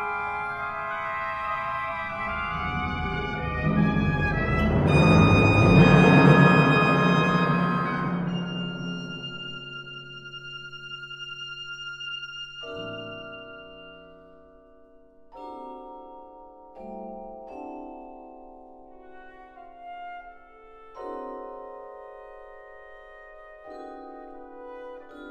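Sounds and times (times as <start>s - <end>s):
percussion concerto music: 1.3s - 10.8s.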